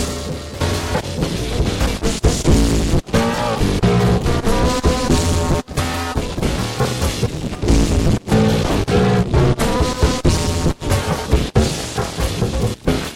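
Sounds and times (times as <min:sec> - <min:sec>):
blues drumming: 0:00.0 - 0:13.1.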